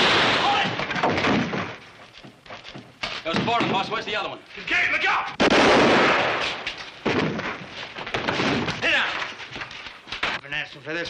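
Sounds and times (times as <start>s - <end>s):
gunshots in a western radio drama standoff: 0.0s - 1.8s, 5.4s - 9.3s
speech: 3.4s - 6.6s, 10.5s - 11.0s.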